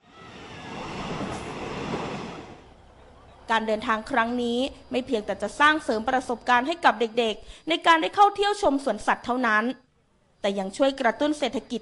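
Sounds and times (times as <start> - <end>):
passenger train running on rails: 0.0 - 5.5
speech: 3.5 - 9.8, 10.4 - 11.7.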